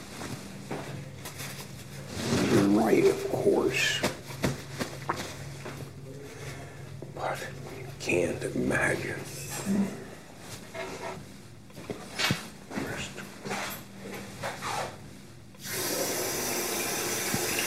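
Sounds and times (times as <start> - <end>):
soft shuffling: 0.0 - 15.5
speech: 2.9 - 4.1, 8.1 - 10.0
person breathing: 6.2 - 7.0
water running from a tap as a man washes his hands: 15.6 - 17.6.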